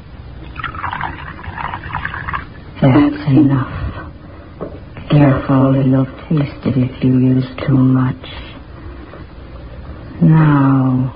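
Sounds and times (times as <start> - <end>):
liquid poured from bottle into cocoa: 0.4 - 3.2
speech: 2.8 - 3.9, 5.1 - 8.4, 10.2 - 11.1.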